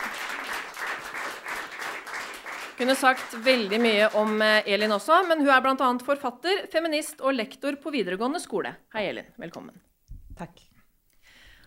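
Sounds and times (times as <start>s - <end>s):
audience applause: 0.0s - 5.4s
speech: 2.8s - 10.7s.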